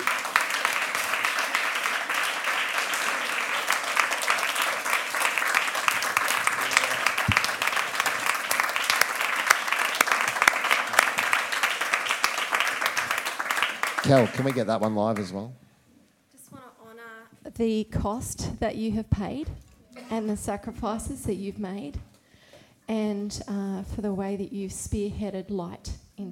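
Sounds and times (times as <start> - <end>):
people clapping: 0.0 - 15.5
speech: 14.1 - 15.6, 17.6 - 22.0, 22.9 - 25.9.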